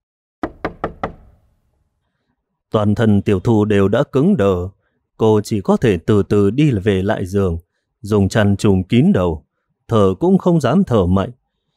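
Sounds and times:
knocking on a door: 0:00.4 - 0:01.4
speech: 0:02.7 - 0:11.4.

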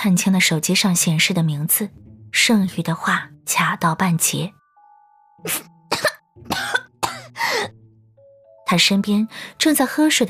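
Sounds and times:
speech: 0:00.0 - 0:04.6, 0:05.4 - 0:06.8, 0:08.7 - 0:10.2
person coughing after choking on water: 0:05.4 - 0:07.7.

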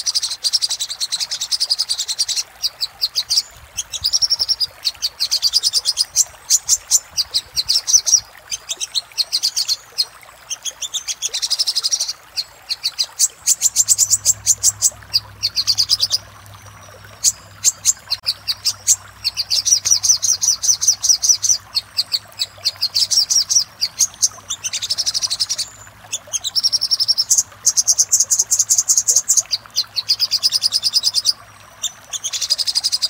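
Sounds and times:
little spiderhunter song: 0:00.0 - 0:33.0.

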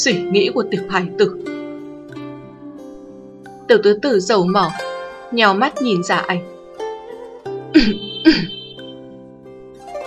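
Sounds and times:
speech: 0:00.0 - 0:01.5, 0:03.7 - 0:06.5, 0:07.7 - 0:08.5
dry cough: 0:07.8 - 0:08.8.

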